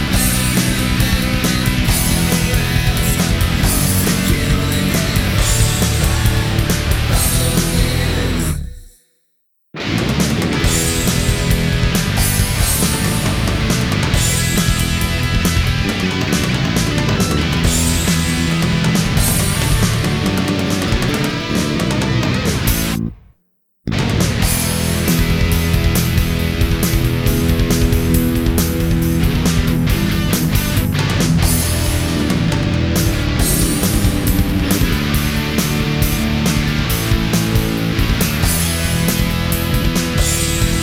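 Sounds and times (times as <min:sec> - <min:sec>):
karaoke singing: 0:00.0 - 0:08.7, 0:09.8 - 0:23.0, 0:23.9 - 0:40.8.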